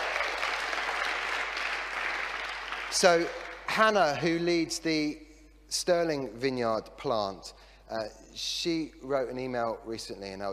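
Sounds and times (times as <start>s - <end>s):
crowd applauding: 0.0s - 4.3s
speech: 2.9s - 10.5s.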